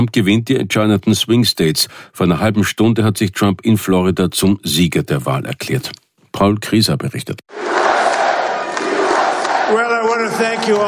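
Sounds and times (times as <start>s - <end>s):
speech: 0.0s - 7.7s, 9.7s - 10.8s
crowd cheering at election rally in Florida: 7.5s - 10.8s.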